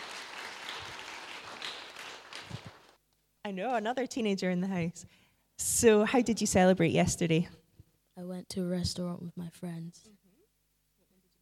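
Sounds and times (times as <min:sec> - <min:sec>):
audience clapping: 0:00.0 - 0:03.0
speech: 0:03.5 - 0:07.6, 0:08.2 - 0:10.2.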